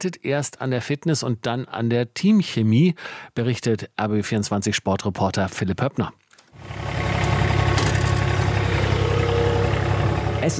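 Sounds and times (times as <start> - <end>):
speech: 0.0 - 7.0
ride-on lawn mower engine running: 6.6 - 10.5.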